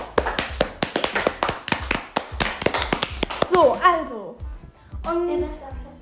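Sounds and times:
hand clapping from one or a few people: 0.0s - 3.8s
speech: 5.1s - 5.9s.

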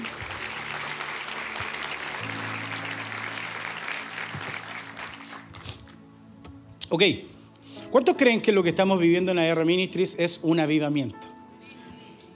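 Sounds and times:
audience applause: 0.0s - 6.0s
low sustained keyboard chords: 0.0s - 12.3s
speech: 6.9s - 7.3s, 7.9s - 11.2s.

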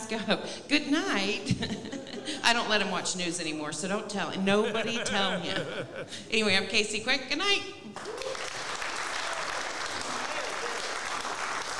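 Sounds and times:
speech: 0.1s - 8.1s
laughter: 1.4s - 2.6s, 4.4s - 6.3s
stand-up comedy audience applause after a comic's set: 8.0s - 11.7s.

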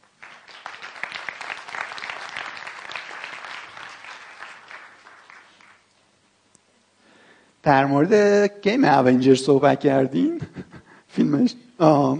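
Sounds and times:
audience applause: 0.0s - 5.9s
speech: 7.6s - 10.6s, 11.3s - 12.1s.

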